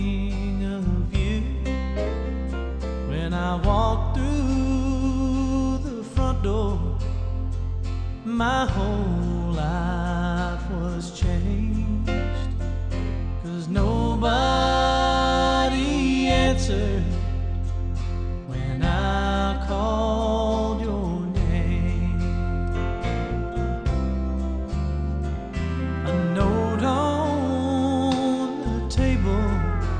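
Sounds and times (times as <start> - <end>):
country music: 0.0 - 29.9.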